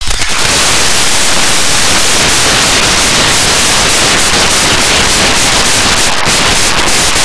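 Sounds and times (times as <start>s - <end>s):
steam hissing: 0.0s - 7.2s.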